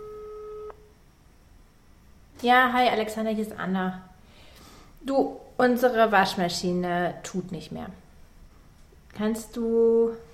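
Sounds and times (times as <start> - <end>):
telephone ringing tone while placing a call: 0.0 - 0.9
faint hiss: 0.0 - 10.3
speech: 2.4 - 4.1, 5.0 - 8.0, 9.2 - 10.2.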